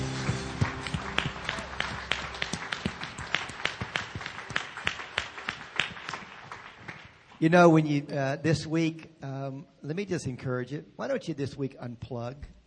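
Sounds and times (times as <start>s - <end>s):
crowd clapping: 0.0s - 7.4s
speech: 7.4s - 12.6s.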